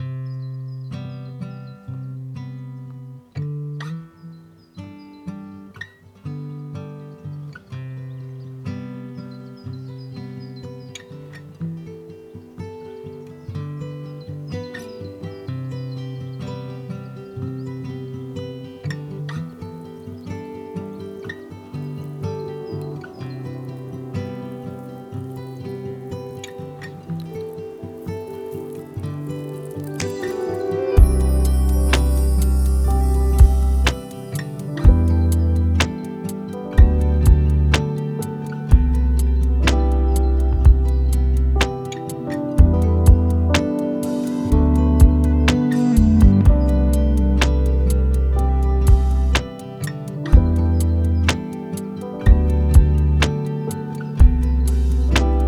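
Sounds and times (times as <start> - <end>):
lofi hip hop: 29.3 - 55.4.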